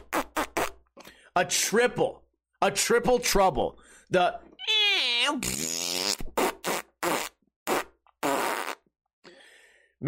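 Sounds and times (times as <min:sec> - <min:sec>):
voice imitating a combo fart after a chili dog meal: 0:00.0 - 0:00.8, 0:04.6 - 0:08.9
speech: 0:01.4 - 0:05.9.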